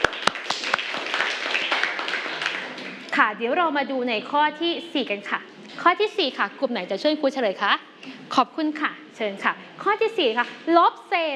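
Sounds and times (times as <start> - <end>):
children clapping: 0.0 - 3.2
speech: 3.2 - 11.3.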